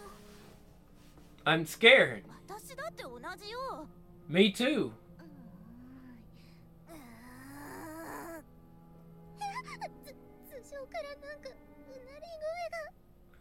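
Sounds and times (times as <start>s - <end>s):
speech: 1.5s - 5.0s
eerie wailing from above: 6.9s - 8.4s.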